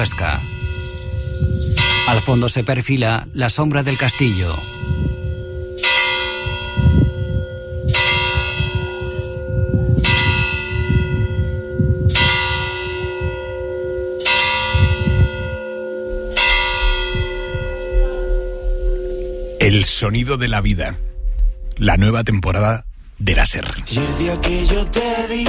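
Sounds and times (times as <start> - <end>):
speech: 0.0 - 0.6, 2.1 - 4.8, 19.8 - 21.1, 21.8 - 25.4
church bell of the iglesia de la Res tolling at midnight: 0.0 - 3.0, 3.7 - 20.4.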